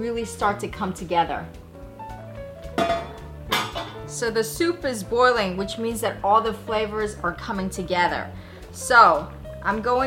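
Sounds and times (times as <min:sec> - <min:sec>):
speech: 0:00.0 - 0:01.6, 0:04.1 - 0:10.0
lid placed on soup pot: 0:02.8 - 0:04.0.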